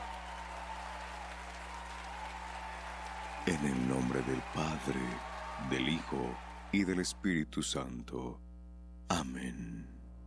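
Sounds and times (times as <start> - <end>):
audience applause: 0.0 - 7.2
speech: 3.5 - 8.4, 9.1 - 10.0.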